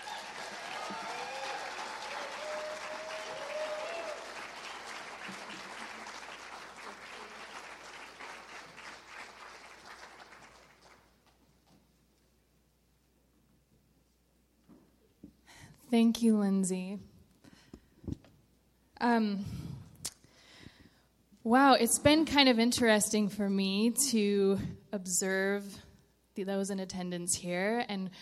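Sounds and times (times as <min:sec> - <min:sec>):
audience applause: 0:00.0 - 0:11.3
speech: 0:15.9 - 0:17.1, 0:19.0 - 0:19.6, 0:21.5 - 0:25.8, 0:26.4 - 0:28.2.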